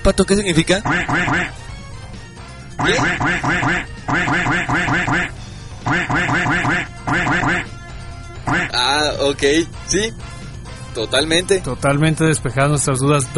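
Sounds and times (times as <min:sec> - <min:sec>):
speech: 0:00.1 - 0:01.6, 0:02.8 - 0:07.8, 0:08.4 - 0:10.3, 0:11.0 - 0:13.3
voice imitating duck quacks: 0:00.8 - 0:01.5, 0:02.8 - 0:07.7, 0:08.4 - 0:08.9.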